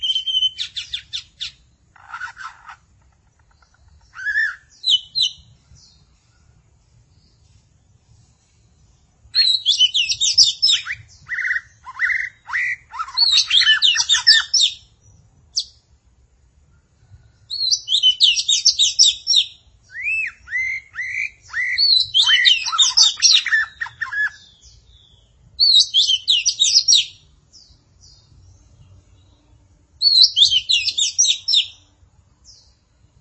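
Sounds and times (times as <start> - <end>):
magpie-robin or shama singing: 0.0 - 33.1.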